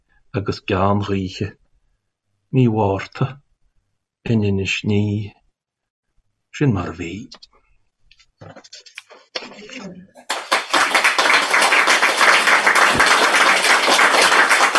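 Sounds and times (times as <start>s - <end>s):
speech: 0.4s - 1.6s, 2.5s - 3.4s, 4.2s - 5.4s, 6.6s - 7.5s, 8.4s - 10.4s
audience clapping after a poem: 10.2s - 14.7s.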